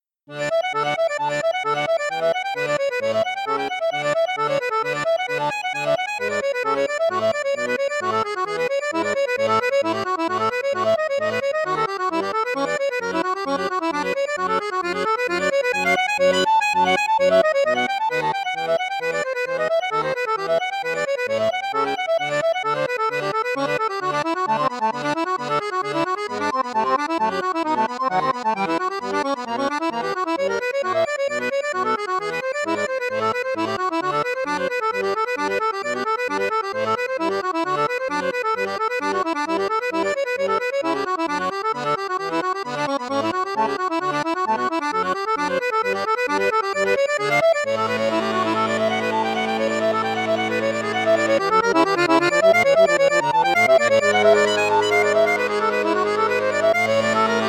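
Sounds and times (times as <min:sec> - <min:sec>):
accordion on bassoon piccolo register: 0:00.0 - 0:57.4.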